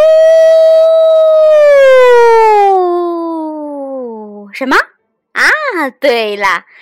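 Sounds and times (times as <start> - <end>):
fire engine siren: 0.0 - 2.8
speech: 4.6 - 6.8.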